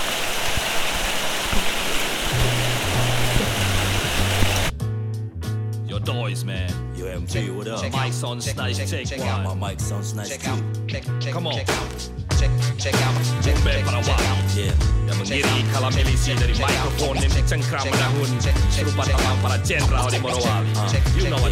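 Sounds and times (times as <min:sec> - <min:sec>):
heavy rain: 0:00.0 - 0:04.7
music with pulsing bass line: 0:02.4 - 0:21.4.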